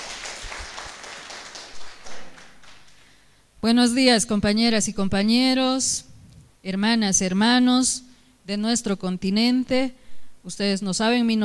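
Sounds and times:
audience applause: 0.0 - 3.1
speech: 3.6 - 11.4.

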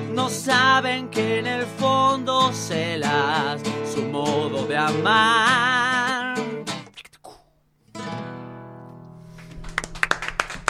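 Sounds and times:
speech: 0.2 - 6.2
audience applause: 9.4 - 10.6.

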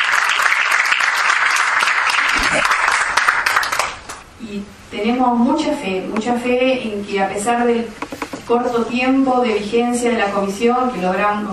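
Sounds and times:
audience clapping: 0.0 - 4.2
speech: 2.6 - 2.8, 4.5 - 11.5.

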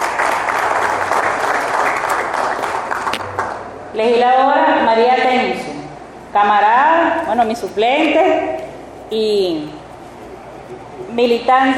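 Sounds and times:
audience applause: 0.0 - 3.7
speech: 4.0 - 5.6, 6.3 - 9.8, 11.2 - 11.7.

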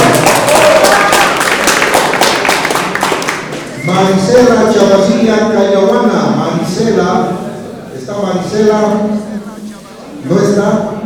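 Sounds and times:
applause: 0.0 - 3.8
speech: 3.9 - 7.4, 8.1 - 9.5, 10.2 - 10.9.

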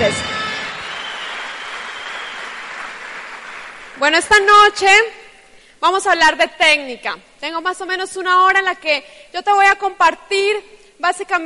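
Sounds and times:
applause: 0.0 - 4.3
speech: 4.0 - 5.2, 5.8 - 11.4.

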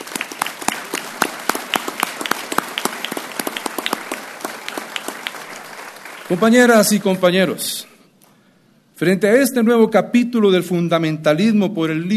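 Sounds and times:
audience applause: 0.0 - 7.3
speech: 6.3 - 7.9, 9.0 - 12.1.

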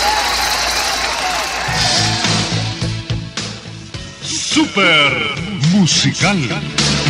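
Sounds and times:
audience applause for the winners: 0.0 - 2.6
speech: 4.8 - 7.0.

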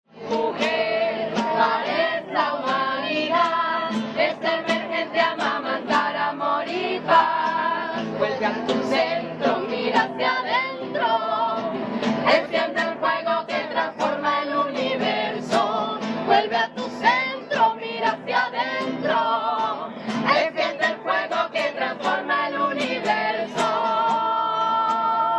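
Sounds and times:
women singing: 0.2 - 25.3.

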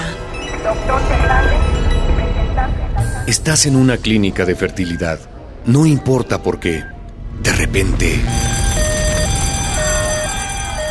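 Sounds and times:
speech: 0.6 - 1.8, 2.6 - 8.5
dense rumbling noise: 0.8 - 10.8
fire alarm going off in a fertility clinic: 8.2 - 10.8.

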